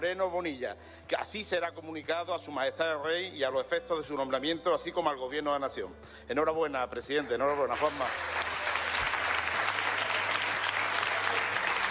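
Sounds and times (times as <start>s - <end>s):
speech: 0.0s - 8.5s
applause from a large group in a parliament chamber: 7.5s - 11.9s.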